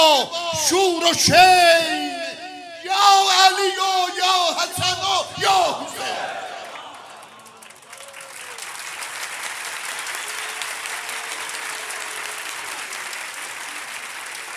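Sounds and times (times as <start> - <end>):
speech: 0.2 - 2.1, 2.8 - 6.5
audience applause: 6.0 - 14.5.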